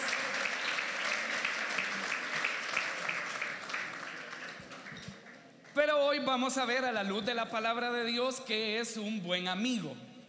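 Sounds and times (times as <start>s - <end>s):
audience applause: 0.0s - 5.5s
speech: 5.9s - 10.1s.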